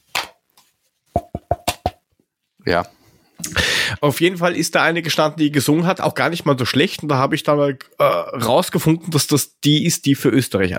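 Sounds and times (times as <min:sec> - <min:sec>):
knocking on a wooden desk: 0:01.2 - 0:02.0
speech: 0:02.6 - 0:03.0, 0:03.9 - 0:10.7.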